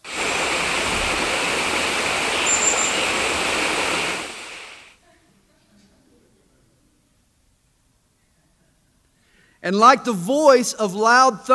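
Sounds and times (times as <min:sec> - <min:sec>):
rushing water: 0:00.0 - 0:04.9
speech: 0:09.6 - 0:11.5.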